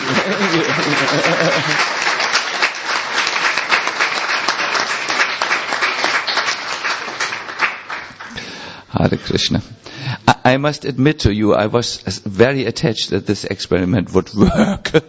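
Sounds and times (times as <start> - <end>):
laughter: 0.0 - 2.2, 14.4 - 15.0
applause: 0.0 - 8.6
speech: 9.1 - 9.8, 10.4 - 15.0.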